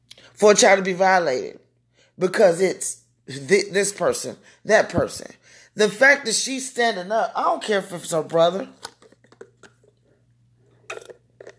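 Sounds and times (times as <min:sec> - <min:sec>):
speech: 0:00.4 - 0:01.6, 0:02.2 - 0:08.9
person sipping water: 0:08.8 - 0:11.5.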